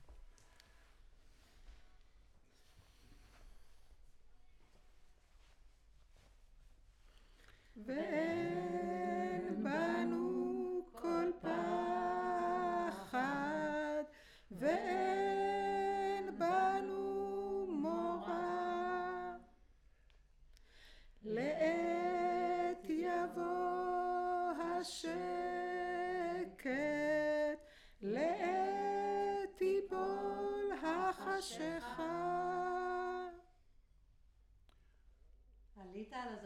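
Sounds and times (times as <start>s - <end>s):
choir singing: 7.8s - 19.4s, 21.3s - 27.2s, 28.1s - 33.4s.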